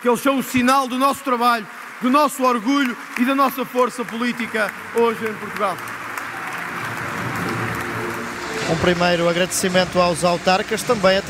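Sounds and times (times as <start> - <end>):
speech: 0.0 - 5.9, 8.7 - 11.2
audience round of applause: 0.0 - 11.2.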